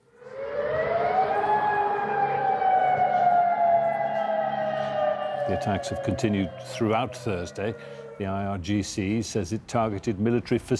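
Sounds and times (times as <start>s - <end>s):
warning siren wailing: 0.0s - 8.7s
speech: 5.5s - 10.7s.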